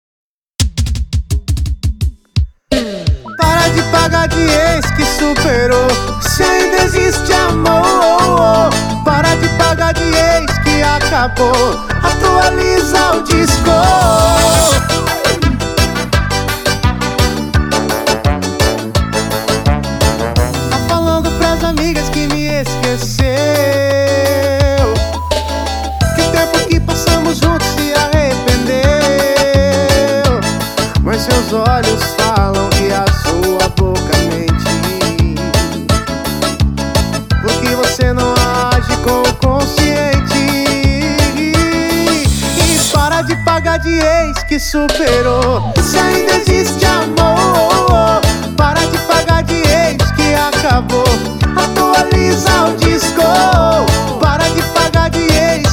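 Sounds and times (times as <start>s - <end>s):
piseiro music: 0.6s - 55.7s.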